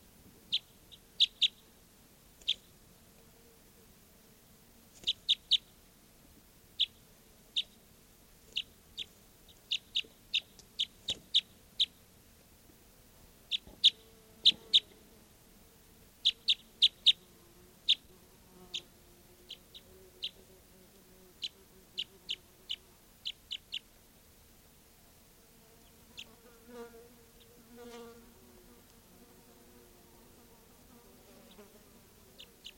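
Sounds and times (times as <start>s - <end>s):
bird chirping: 0.5s - 1.6s, 2.4s - 2.7s, 5.0s - 5.7s, 6.8s - 7.8s, 8.5s - 12.0s, 13.5s - 15.0s, 16.2s - 17.2s, 17.8s - 18.1s, 19.5s - 20.4s, 21.4s - 23.9s, 32.4s - 32.7s.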